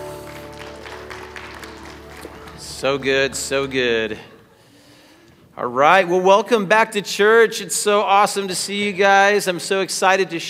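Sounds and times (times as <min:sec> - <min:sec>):
audience applause: 0:00.0 - 0:04.1
speech: 0:02.8 - 0:04.3, 0:05.6 - 0:10.4.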